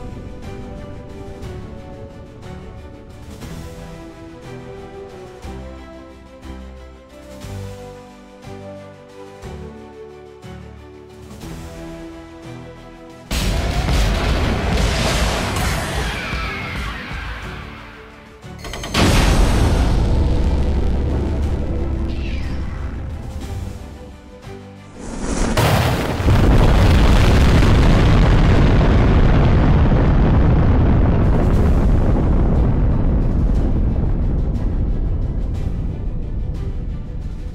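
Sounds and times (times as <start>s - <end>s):
missile launch: 13.3s - 17.1s, 18.9s - 23.3s, 25.0s - 36.0s.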